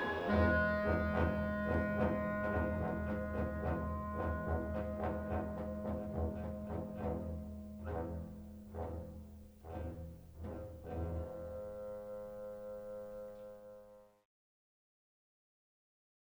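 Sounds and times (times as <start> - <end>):
waltz music: 0.0 - 12.6.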